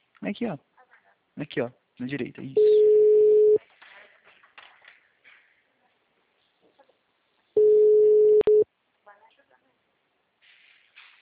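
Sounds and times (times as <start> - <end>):
speech: 0.2 - 0.7, 1.4 - 2.8
telephone busy signal: 2.6 - 3.6, 7.6 - 8.6.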